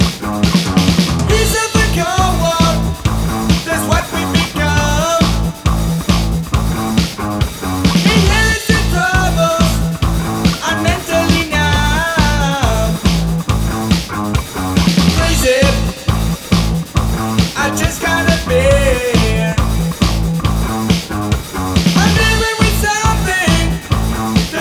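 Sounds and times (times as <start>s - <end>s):
rock guitar backing track: 0.0s - 24.6s
person singing: 1.3s - 5.7s, 8.0s - 13.2s, 15.2s - 16.3s, 17.5s - 19.7s, 22.0s - 24.6s.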